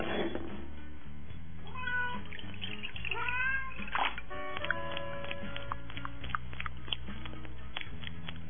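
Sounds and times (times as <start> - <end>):
faint watery pattering: 1.8 - 8.4
stray kitten meowing: 3.1 - 3.9.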